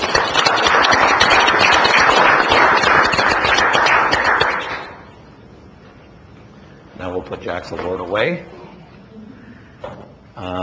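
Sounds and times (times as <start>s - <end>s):
audience applause: 0.0s - 5.1s
speech: 7.5s - 8.6s, 10.4s - 10.6s.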